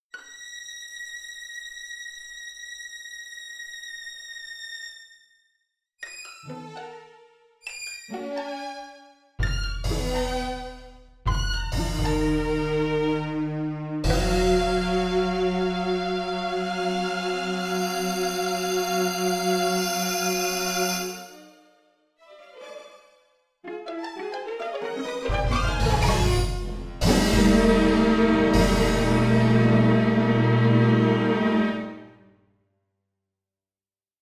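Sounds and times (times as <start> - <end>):
orchestra: 9.4 - 21.4, 23.7 - 32.2.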